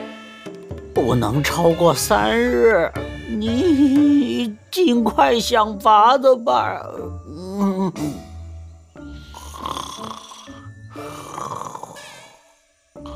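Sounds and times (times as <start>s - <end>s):
speech: 1.0s - 8.2s
snoring: 9.2s - 13.1s.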